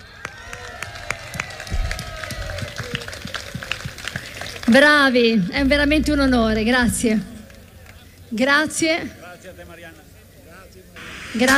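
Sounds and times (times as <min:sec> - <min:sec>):
audience applause: 0:00.0 - 0:05.5
speech: 0:04.7 - 0:07.3, 0:08.3 - 0:10.1, 0:11.3 - 0:11.5.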